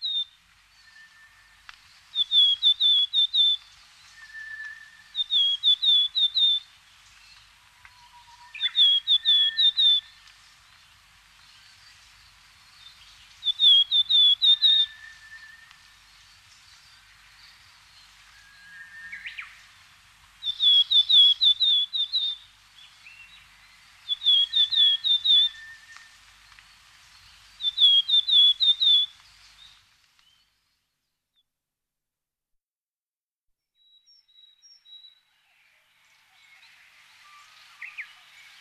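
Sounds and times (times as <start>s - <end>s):
willow tit whistling song: 0.0s - 6.7s, 7.9s - 10.2s, 12.8s - 16.0s, 18.2s - 19.6s, 20.4s - 26.6s, 27.2s - 30.5s, 36.3s - 38.6s.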